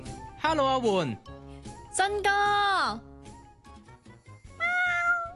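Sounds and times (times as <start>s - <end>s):
speech: 0.5s - 1.3s, 2.0s - 3.1s
shop cat meowing: 4.5s - 5.3s.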